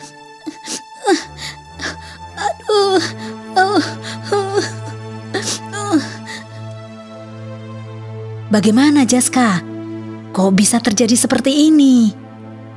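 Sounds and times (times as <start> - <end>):
child crying and wailing: 0.5 - 6.4
speech: 8.5 - 9.7, 10.4 - 12.2.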